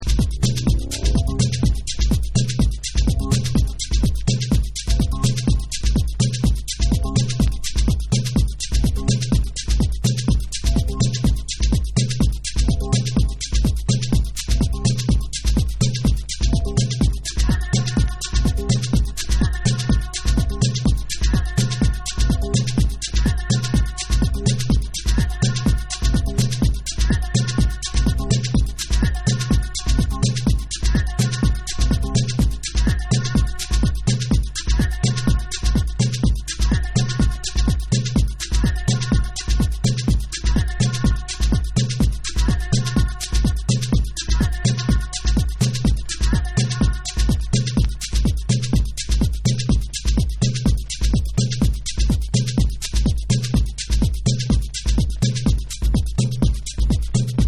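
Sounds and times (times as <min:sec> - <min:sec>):
tribal beats: 0:00.0 - 0:57.4.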